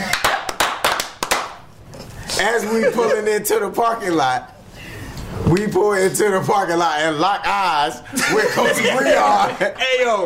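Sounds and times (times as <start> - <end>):
hands clapping: 0.0 - 1.6
speech: 2.4 - 4.6, 5.5 - 10.2
laughter: 8.1 - 9.8.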